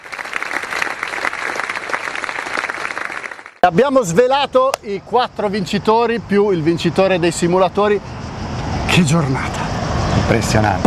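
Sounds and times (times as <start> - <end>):
audience applause: 0.0 - 3.6
speech: 3.7 - 8.2, 9.0 - 9.6, 10.3 - 10.8.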